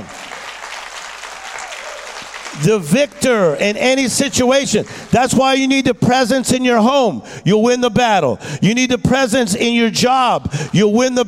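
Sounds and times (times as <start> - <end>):
audience clapping hands: 0.0 - 5.9
speech: 2.6 - 11.2.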